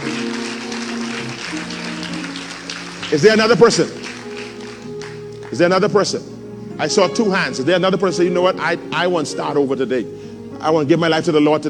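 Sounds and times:
audience clapping: 0.0 - 5.8
speech: 3.1 - 4.0, 5.5 - 11.6.

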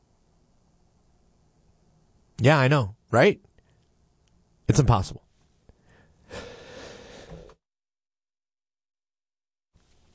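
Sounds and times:
speech: 2.4 - 3.5, 4.7 - 5.2
person choking on their own breath: 6.2 - 7.6.

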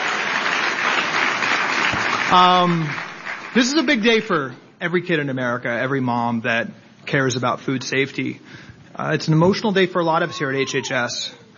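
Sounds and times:
audience applause: 0.0 - 4.1
speech: 2.3 - 3.0, 3.6 - 11.4.

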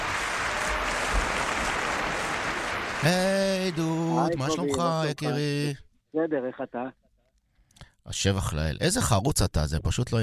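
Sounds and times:
audience applause: 0.0 - 5.2
speech: 3.0 - 7.0, 8.0 - 10.2.

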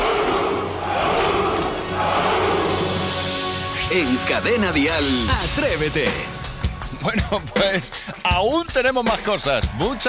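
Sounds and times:
large crowd of men roaring a Spartan battle cry: 0.0 - 3.1
speech: 3.9 - 6.4, 7.0 - 10.0.

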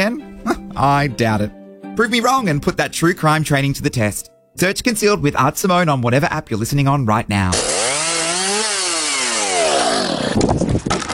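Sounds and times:
speech: 0.0 - 7.7
chainsaw cutting wood: 7.5 - 11.1.

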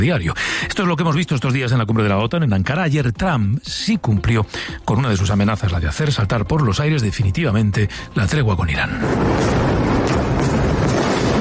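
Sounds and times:
speech: 0.0 - 9.7
overnight bombing in Iran: 8.7 - 11.3.

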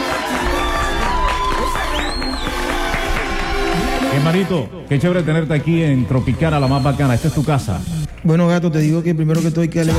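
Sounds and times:
studio cheering: 0.0 - 7.6
studio applause: 0.0 - 8.3
speech: 4.3 - 9.9.

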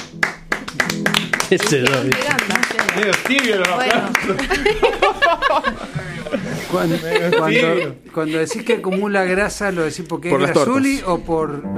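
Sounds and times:
applause, hands clapping: 0.0 - 5.2
laughter: 1.5 - 10.9
speech: 1.5 - 11.7.

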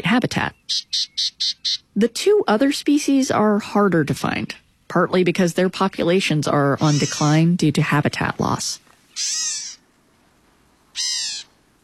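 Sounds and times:
speech: 0.0 - 9.6
Black-capped Gnatcatcher giving harsh raspy calls: 0.5 - 2.0, 6.8 - 7.5, 9.1 - 9.8, 10.9 - 11.6.

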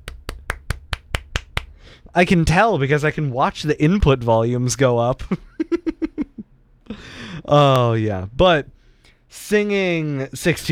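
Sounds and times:
hand clapping: 0.0 - 1.8
speech: 2.0 - 6.0, 7.4 - 10.7.

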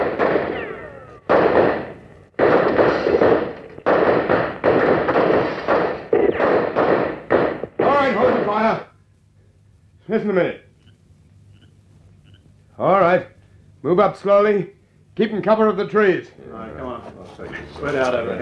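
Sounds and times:
gunfire in a radio drama: 0.0 - 8.7
speech: 10.1 - 10.6, 12.8 - 18.4.

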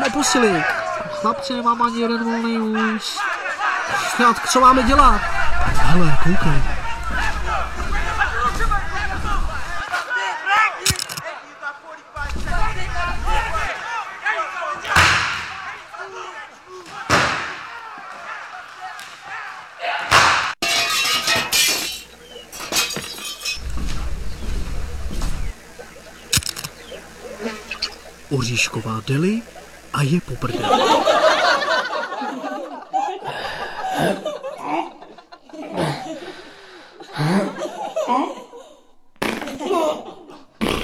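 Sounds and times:
laughter: 0.0 - 20.2, 21.4 - 40.8
agitated crowd shouting in a restaurant brawl: 0.0 - 38.8
speech: 0.1 - 6.8, 28.9 - 31.0
glass breaking: 20.2 - 23.6.

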